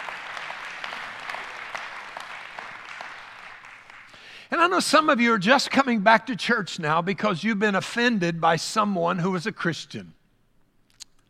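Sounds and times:
audience applause, hand clapping: 0.0s - 4.3s
speech: 4.5s - 10.2s.

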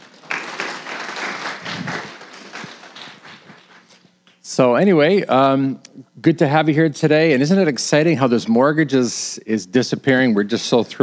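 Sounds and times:
audience applause: 0.0s - 4.0s
speech: 4.6s - 11.0s.

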